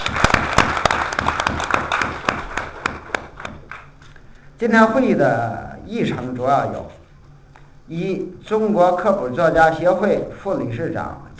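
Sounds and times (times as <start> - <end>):
audience applause: 0.0 - 3.9
speech: 4.6 - 7.0, 7.9 - 11.2.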